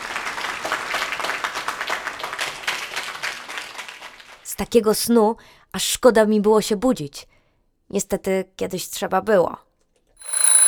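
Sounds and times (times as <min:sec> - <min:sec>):
applause: 0:00.0 - 0:04.5
speech: 0:04.6 - 0:07.3, 0:07.9 - 0:09.7.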